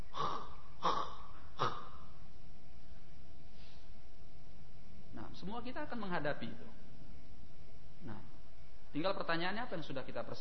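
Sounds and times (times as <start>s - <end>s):
voice imitating a dying person's snoring-like death rattle: 0.0s - 2.2s
speech: 5.4s - 6.8s, 8.9s - 10.3s.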